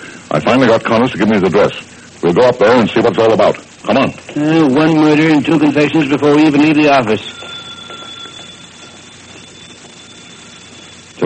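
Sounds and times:
speech: 0.3s - 7.4s
telephone ringing: 3.9s - 11.2s.

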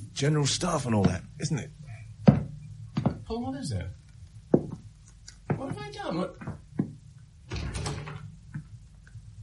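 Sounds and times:
speech: 0.2s - 1.8s, 3.3s - 4.0s, 5.6s - 6.6s
door opening: 7.4s - 8.4s.

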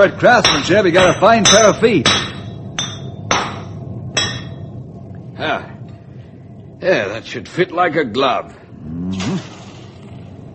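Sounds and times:
speech: 0.0s - 2.3s, 6.8s - 9.5s
low rumble: 0.0s - 10.5s
hammer striking a horseshoe: 0.4s - 4.6s.

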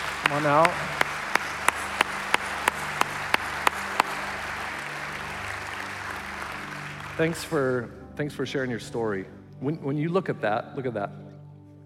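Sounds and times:
audience applause claps: 0.0s - 7.7s
speech: 0.3s - 1.0s, 7.2s - 11.2s.

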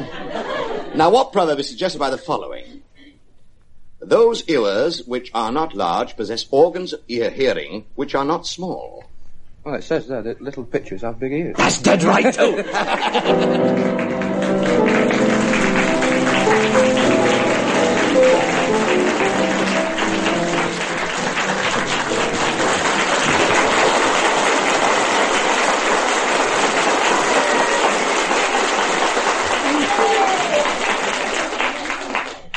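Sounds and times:
laughter: 0.0s - 1.1s, 11.6s - 13.9s
speech: 1.0s - 2.6s, 4.0s - 15.2s
huge loud round of applause: 11.9s - 32.5s.

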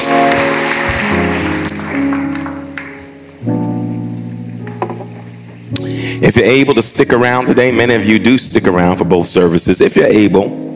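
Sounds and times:
audience applause: 0.0s - 3.2s
sustained organ-like chords: 0.0s - 10.7s
speech: 6.2s - 10.7s.

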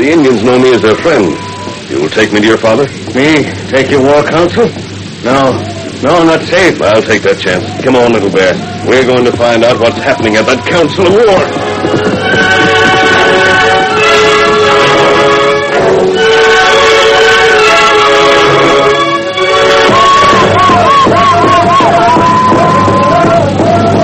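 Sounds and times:
speech: 0.0s - 12.1s
tribal war dance drums throbbing: 0.0s - 24.0s
warriors shouting boastfully: 7.6s - 14.4s, 19.5s - 24.0s
women wailing: 19.8s - 24.0s.

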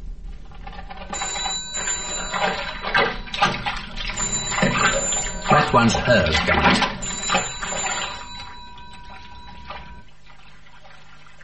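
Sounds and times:
telephone ringing: 1.1s - 10.1s
speech: 5.7s - 7.0s.

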